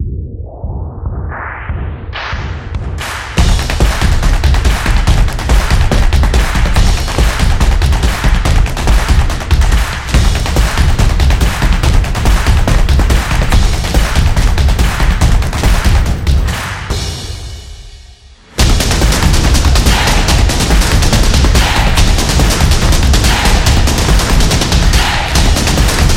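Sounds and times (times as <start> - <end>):
stomps and claps: 2.2 - 17.4, 18.6 - 26.1.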